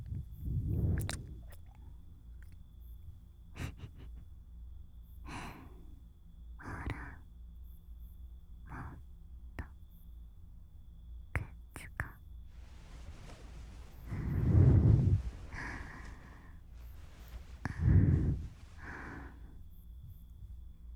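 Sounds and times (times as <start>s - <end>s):
ear licking ASMR: 0.1s - 2.6s, 12.6s - 19.3s
full-body massage ASMR: 12.5s - 19.4s.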